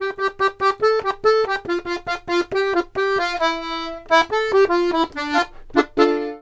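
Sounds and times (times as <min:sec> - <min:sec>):
accordions: 0:00.0 - 0:06.4.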